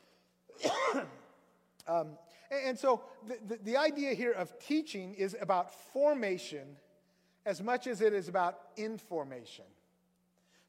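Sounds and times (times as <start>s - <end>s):
person coughing: 0.5s - 1.3s
speech: 1.9s - 6.8s, 7.4s - 9.8s.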